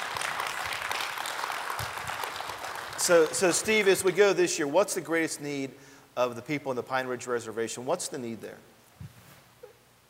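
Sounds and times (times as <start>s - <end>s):
audience clapping: 0.0s - 4.4s
speech: 3.1s - 8.7s.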